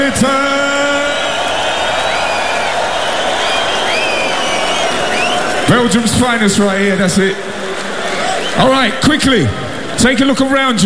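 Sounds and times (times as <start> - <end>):
speech: 0.0 - 0.4, 5.7 - 7.5, 8.6 - 10.8
festival crowd cheering and applauding: 0.0 - 10.8
whistles and whoops: 0.7 - 5.7.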